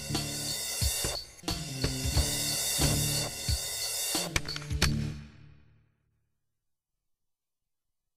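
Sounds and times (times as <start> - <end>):
rap music: 0.0 - 5.2.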